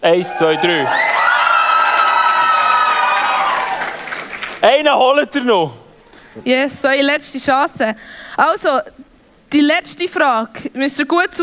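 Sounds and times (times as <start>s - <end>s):
speech: 0.0s - 1.2s, 4.6s - 5.8s, 6.4s - 11.4s
audience cheering and shouting: 0.0s - 4.2s.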